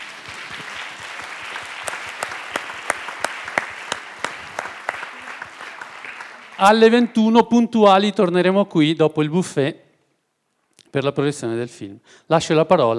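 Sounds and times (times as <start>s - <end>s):
audience applause: 0.0s - 7.2s
speech: 6.6s - 9.8s, 10.9s - 12.9s.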